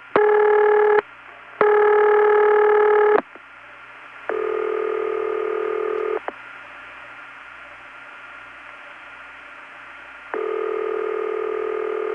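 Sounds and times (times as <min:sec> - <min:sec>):
telephone ringback tones: 0:00.2 - 0:01.0, 0:01.6 - 0:03.2, 0:04.3 - 0:06.2, 0:10.3 - 0:12.1.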